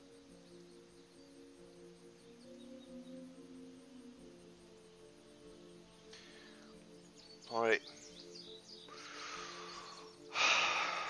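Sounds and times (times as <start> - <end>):
woman taking a deep breath: 6.1 - 6.8, 8.9 - 11.0
speech: 7.5 - 8.1.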